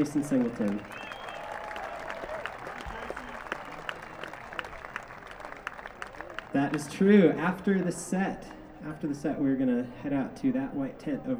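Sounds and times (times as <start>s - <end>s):
speech: 0.0s - 1.1s, 6.6s - 11.3s
crowd applause: 0.0s - 8.0s.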